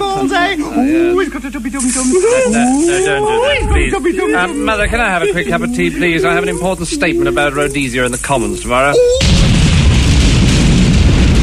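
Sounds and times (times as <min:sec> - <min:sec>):
laughter: 0:00.0 - 0:08.9
speech: 0:00.2 - 0:09.4
explosion sound effect: 0:09.2 - 0:11.4.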